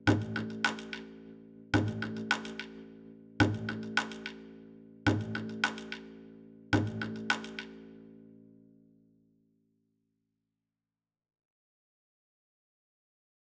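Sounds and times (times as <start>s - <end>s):
binaural snap pizzicato strings: 0.3s - 1.1s, 1.8s - 2.8s, 3.4s - 4.4s, 5.1s - 6.1s, 6.8s - 7.8s.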